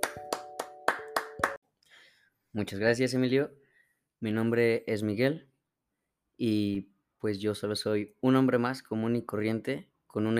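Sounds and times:
applause: 0:00.0 - 0:01.6
speech: 0:02.6 - 0:03.6, 0:04.2 - 0:05.5, 0:06.4 - 0:10.3.

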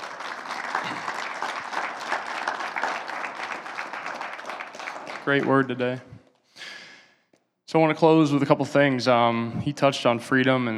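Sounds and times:
audience applause: 0:00.0 - 0:06.0
speech: 0:05.2 - 0:06.1, 0:07.7 - 0:10.7.

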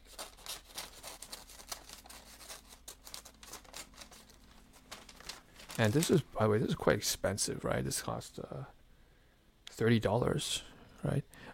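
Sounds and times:
scissors cutting Christmas wrapping paper: 0:00.0 - 0:06.1
speech: 0:05.8 - 0:08.8, 0:09.8 - 0:11.2.

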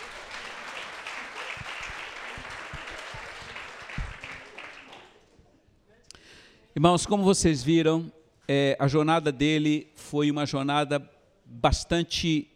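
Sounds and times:
audience applauding: 0:00.0 - 0:05.3
speech: 0:06.8 - 0:12.5.

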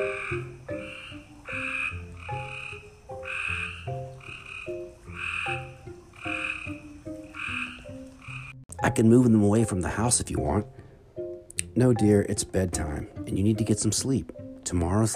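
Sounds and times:
chorus of frogs croaking at night: 0:00.0 - 0:08.7
speech: 0:00.3 - 0:00.6, 0:08.8 - 0:10.8, 0:11.8 - 0:15.1.

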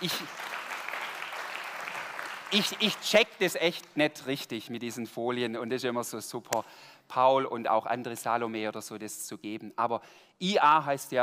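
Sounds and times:
speech: 0:00.0 - 0:00.4, 0:02.5 - 0:11.2
audience applause: 0:00.0 - 0:03.1.

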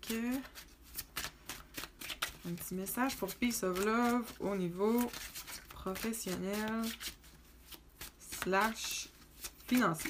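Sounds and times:
tarot cards being shuffled and drawn during a card reading: 0:00.0 - 0:10.0
speech: 0:00.1 - 0:00.7, 0:02.4 - 0:07.1, 0:08.4 - 0:09.0, 0:09.7 - 0:10.0.

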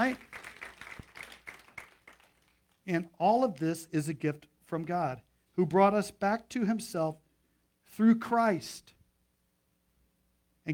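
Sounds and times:
speech: 0:00.0 - 0:00.3, 0:02.9 - 0:07.2, 0:07.9 - 0:09.0
audience clapping: 0:00.0 - 0:02.8.

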